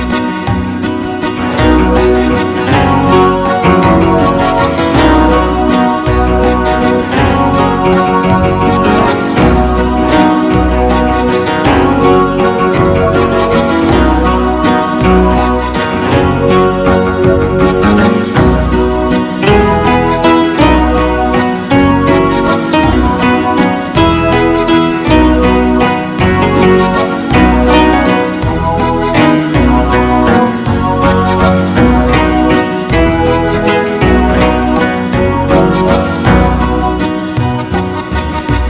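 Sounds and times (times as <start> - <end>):
waltz music: 0.0 - 38.6.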